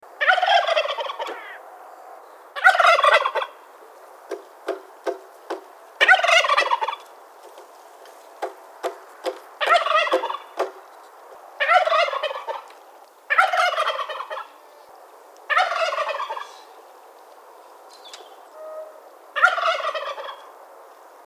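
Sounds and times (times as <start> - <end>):
turkey: 0.2 - 1.6, 2.6 - 3.6, 6.0 - 7.0, 9.6 - 10.7, 11.6 - 14.9, 15.5 - 16.8, 18.5 - 20.6.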